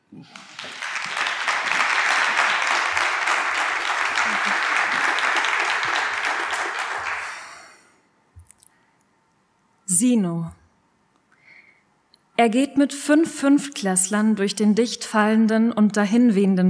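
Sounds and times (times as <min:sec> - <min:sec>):
speech: 0:00.1 - 0:00.6, 0:10.0 - 0:10.6, 0:12.4 - 0:16.6
audience applause: 0:00.2 - 0:07.7.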